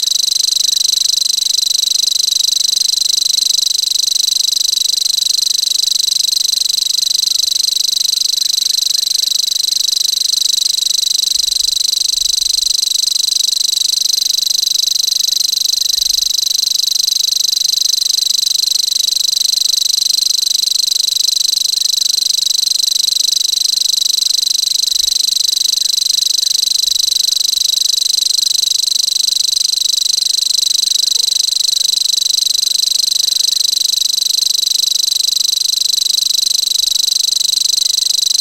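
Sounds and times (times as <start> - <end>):
grasshopper warbler: 0.0 - 38.3.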